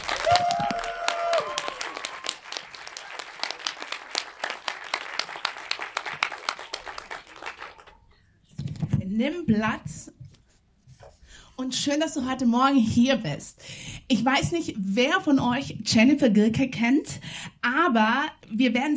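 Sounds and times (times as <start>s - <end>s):
audience applause welcoming a guest at a morning event: 0.0s - 8.0s
speech: 9.2s - 10.1s, 11.6s - 18.9s.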